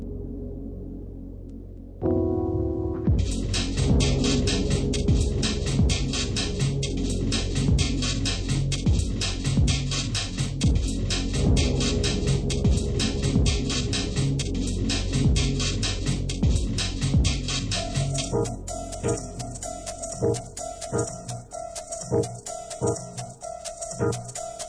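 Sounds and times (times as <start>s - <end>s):
jazzy music: 2.0s - 24.6s.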